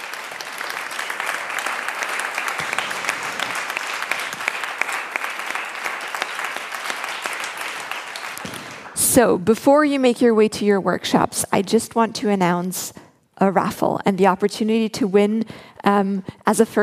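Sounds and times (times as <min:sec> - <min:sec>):
audience applause: 0:00.0 - 0:09.0
speech: 0:09.2 - 0:16.8.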